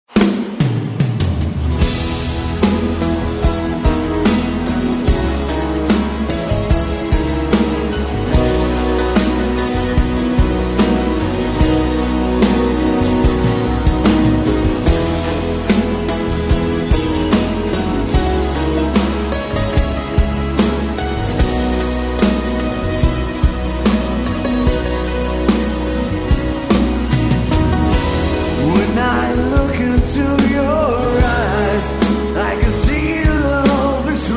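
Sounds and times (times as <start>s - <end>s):
acoustic music: 0.1s - 34.3s.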